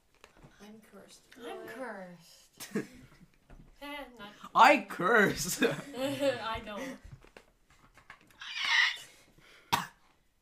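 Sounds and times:
speech: 0.7 - 3.2, 3.8 - 7.1
cough: 9.7 - 10.1.

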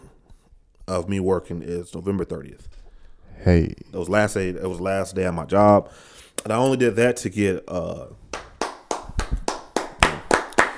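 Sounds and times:
speech: 0.9 - 2.8, 3.4 - 8.2
hand clapping: 8.3 - 10.7.

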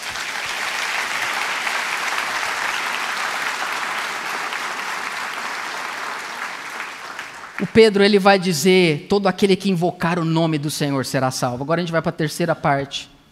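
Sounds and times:
audience applause: 0.0 - 8.0
speech: 7.6 - 13.1.

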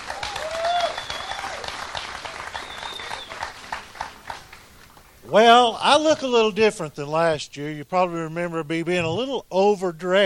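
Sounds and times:
audience applause: 0.0 - 5.1
whistles: 0.4 - 1.7, 2.4 - 3.5
speech: 5.3 - 10.2.

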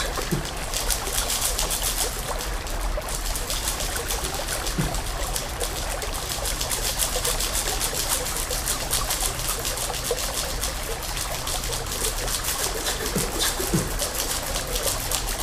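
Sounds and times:
water trickling: 0.0 - 15.4.

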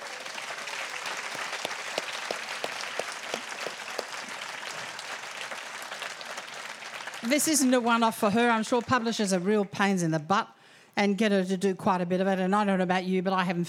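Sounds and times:
applause: 0.0 - 9.8
speech: 7.2 - 13.6.

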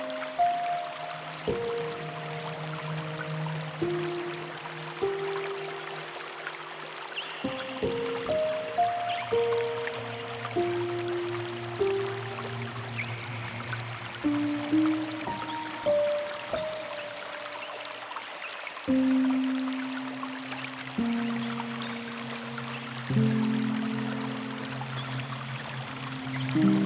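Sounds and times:
flowing river water: 0.0 - 26.8
soft instrumental piano music: 0.0 - 26.8.

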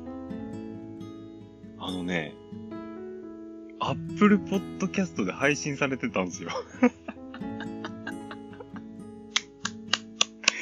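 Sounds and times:
speech: 1.8 - 2.6, 3.9 - 7.0
laughter: 6.4 - 10.6
hand clapping: 9.3 - 10.6.

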